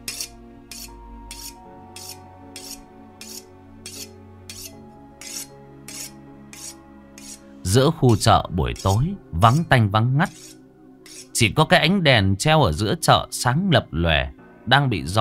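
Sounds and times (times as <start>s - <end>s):
butcher's knife sharpened on a whetstone at a meat stall: 0.0s - 7.4s, 8.1s - 9.7s, 10.3s - 11.4s
music: 0.0s - 15.1s
speech: 7.7s - 10.4s, 11.4s - 15.1s.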